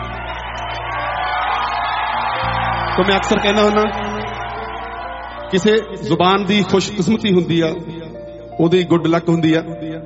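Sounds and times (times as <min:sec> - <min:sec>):
shouts and whoops: 0:00.0 - 0:05.9
audience clapping for the poet Surjit Patar: 0:00.0 - 0:06.7
speech: 0:03.0 - 0:04.2, 0:05.5 - 0:08.0, 0:08.6 - 0:10.0.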